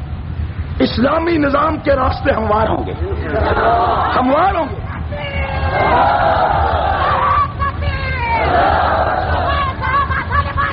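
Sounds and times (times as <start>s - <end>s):
speech: 0.8s - 6.8s
laughter: 2.8s - 7.6s, 8.4s - 10.7s
large crowd chanting political slogans at a rally: 3.2s - 4.2s, 5.4s - 7.5s, 8.3s - 9.8s.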